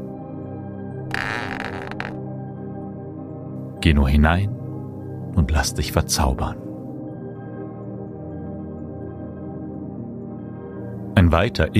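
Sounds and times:
door creaking open: 1.1s - 2.2s
speech: 3.8s - 4.6s, 5.4s - 6.7s, 11.2s - 11.7s.

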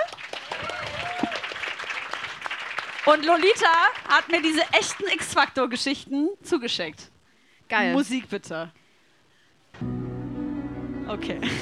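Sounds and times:
audience applause: 0.0s - 5.1s
speech: 3.1s - 7.1s, 7.7s - 8.8s, 11.1s - 11.6s.

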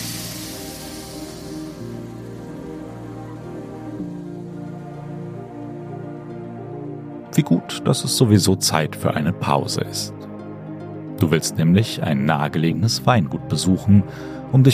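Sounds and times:
steam locomotive releasing steam: 0.0s - 5.4s
speech: 7.4s - 10.2s, 11.2s - 14.7s.

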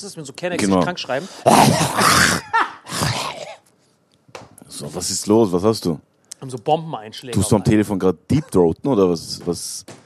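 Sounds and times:
speech: 0.0s - 2.6s, 4.8s - 10.0s
exaggerated fake coughing imitation: 0.6s - 3.6s.

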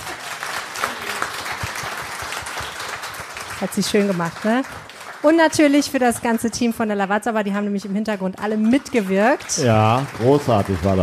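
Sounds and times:
audience applause: 0.0s - 11.0s
speech: 3.6s - 11.0s.

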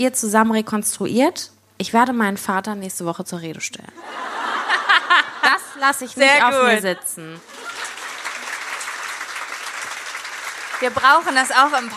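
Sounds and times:
speech: 0.0s - 4.4s, 5.8s - 7.6s, 10.8s - 11.9s
laughter: 4.0s - 8.9s
audience applause: 7.4s - 11.9s.

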